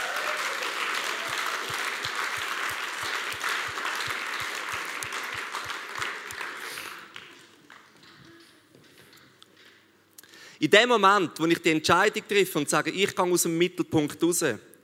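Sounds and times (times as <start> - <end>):
audience applause: 0.0 - 7.9
speech: 10.6 - 14.7.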